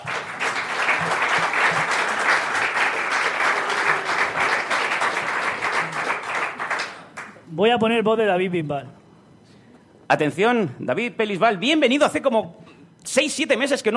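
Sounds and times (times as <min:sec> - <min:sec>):
audience applauding: 0:00.0 - 0:07.4
speech: 0:07.6 - 0:09.0, 0:10.1 - 0:13.9.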